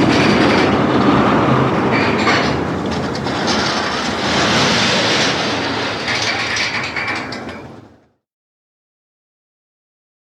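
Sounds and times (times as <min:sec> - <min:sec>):
roller coaster: 0:00.0 - 0:08.2.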